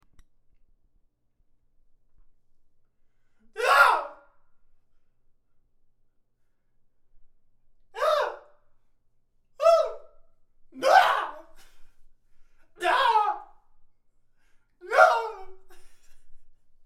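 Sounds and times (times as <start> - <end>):
person screaming: 3.6 - 4.2, 8.0 - 8.5, 9.6 - 10.0, 10.8 - 11.6, 12.8 - 13.5, 14.8 - 15.7.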